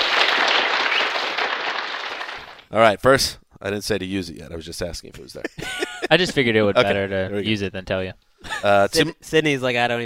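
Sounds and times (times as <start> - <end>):
crowd applause sound effect: 0.0 - 2.7
speech: 2.7 - 10.0
laughter: 5.4 - 7.1.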